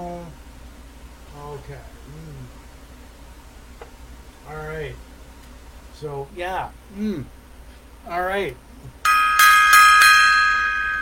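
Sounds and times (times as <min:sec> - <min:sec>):
speech: 0:01.7 - 0:02.6, 0:04.5 - 0:05.1, 0:06.0 - 0:07.4, 0:08.0 - 0:08.6
gong being struck: 0:09.1 - 0:11.0.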